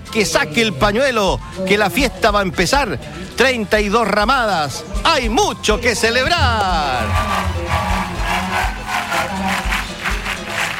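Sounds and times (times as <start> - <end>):
speech: 0.1 - 7.8
crowd applauding and cheering: 6.4 - 10.7.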